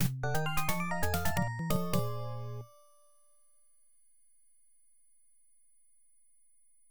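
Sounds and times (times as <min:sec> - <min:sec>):
player win jingle: 0:00.2 - 0:03.0.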